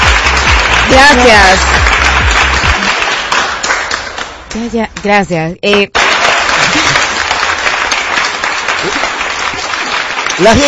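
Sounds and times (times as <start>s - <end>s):
audience applauding a participant: 0.0s - 10.6s
speech: 0.9s - 2.0s, 4.6s - 6.0s, 10.4s - 10.6s.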